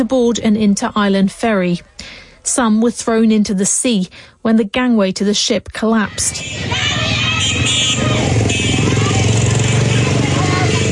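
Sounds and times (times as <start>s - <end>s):
speech: 0.0s - 8.6s
faint murmur of voices: 6.1s - 10.8s
motorbikes driving past: 6.3s - 10.8s.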